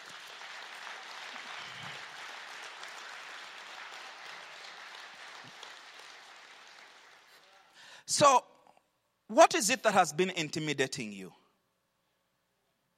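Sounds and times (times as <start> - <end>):
audience clapping hands: 0.0 - 7.8
speech: 8.1 - 8.5, 9.3 - 11.4.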